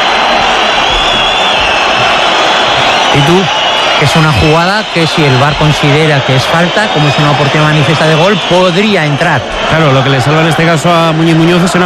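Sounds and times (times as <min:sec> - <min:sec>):
stadium crowd whistling and protesting at El Sardinero: 0:00.0 - 0:11.8
speech: 0:03.2 - 0:11.8.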